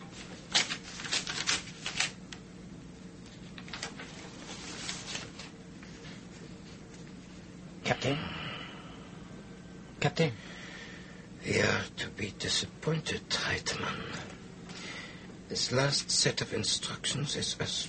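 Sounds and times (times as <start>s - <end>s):
seal being broken and paper envelope torn open: 0.5s - 2.2s, 3.6s - 5.5s
speech: 8.0s - 8.4s, 10.0s - 10.6s, 11.4s - 14.3s, 15.5s - 17.8s.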